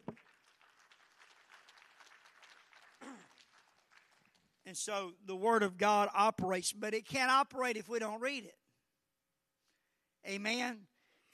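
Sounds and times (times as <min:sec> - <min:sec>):
audience clapping hands: 0:00.0 - 0:04.9
speech: 0:04.7 - 0:08.6, 0:10.3 - 0:11.3.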